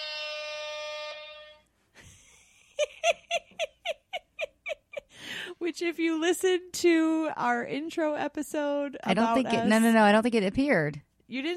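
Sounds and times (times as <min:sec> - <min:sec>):
hype button horn-like blast: 0:00.0 - 0:01.7
laughter: 0:02.0 - 0:05.2
speech: 0:05.6 - 0:11.5.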